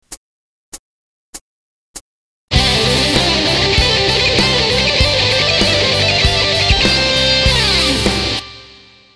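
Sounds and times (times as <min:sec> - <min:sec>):
guitar lick: 0:02.5 - 0:09.1.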